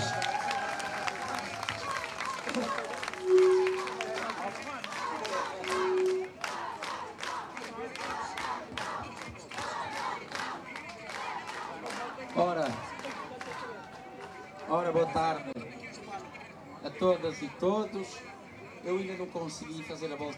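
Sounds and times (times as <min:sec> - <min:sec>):
audience applause: 0:00.0 - 0:15.0
speech: 0:17.0 - 0:20.3.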